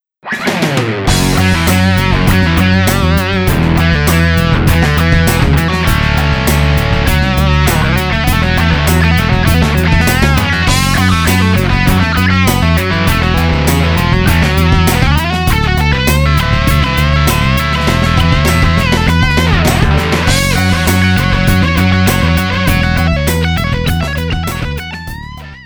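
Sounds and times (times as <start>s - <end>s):
synth patch demo: 1.1s - 25.6s.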